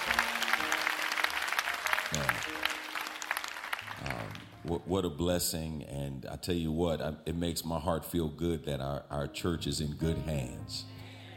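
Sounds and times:
round of applause: 0.0s - 4.6s
speech: 4.7s - 10.9s.

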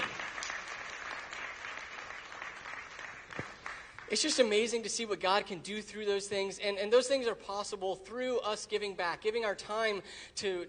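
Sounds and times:
audience applause: 0.0s - 4.1s
speech: 4.1s - 10.6s.

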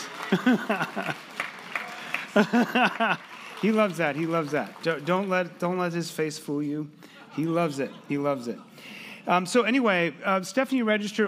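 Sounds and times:
laughter: 0.0s - 4.0s, 7.2s - 9.0s
scattered audience claps: 0.0s - 6.0s
speech: 0.3s - 1.4s, 2.3s - 11.2s.

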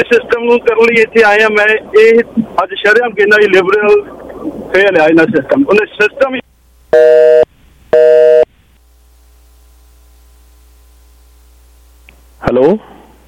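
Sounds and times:
speech: 0.0s - 6.4s, 12.5s - 12.9s
phone line tone pulses after a disconnected call: 6.9s - 8.5s.

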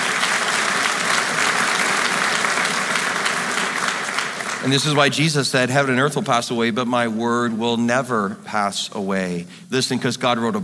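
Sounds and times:
audience applause: 0.0s - 5.2s
speech: 4.6s - 10.6s.

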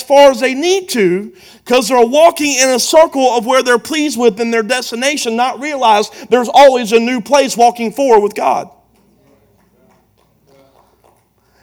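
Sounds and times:
speech: 0.1s - 8.8s
audience members clapping: 8.9s - 11.6s.

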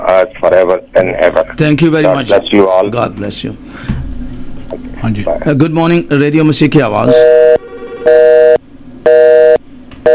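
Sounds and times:
speech: 0.2s - 3.9s, 5.0s - 8.2s
telephone busy tone after a phone line drops: 7.1s - 10.1s.

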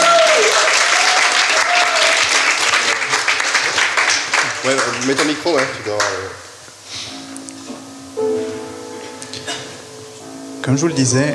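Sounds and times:
audience applause: 0.0s - 6.4s
speech: 4.7s - 6.5s, 10.7s - 11.3s.

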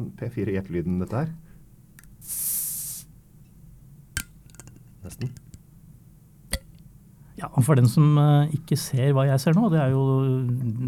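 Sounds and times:
speech: 0.2s - 1.5s, 2.2s - 2.6s, 5.0s - 5.4s, 7.4s - 10.8s
fizzing hiss of a soda bottle cap twisted open: 2.2s - 3.1s.

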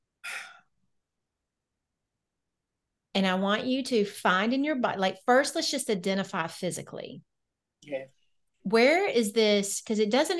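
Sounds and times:
deep breath in: 0.2s - 0.6s
speech: 3.2s - 7.3s, 7.9s - 10.3s.

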